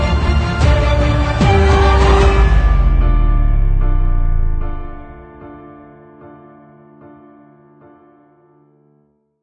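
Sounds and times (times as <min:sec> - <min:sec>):
rising trailer music: 0:00.0 - 0:05.8.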